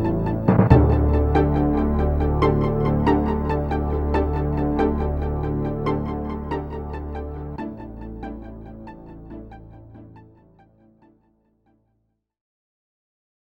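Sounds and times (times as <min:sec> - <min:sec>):
tension music: 0:00.0 - 0:10.6.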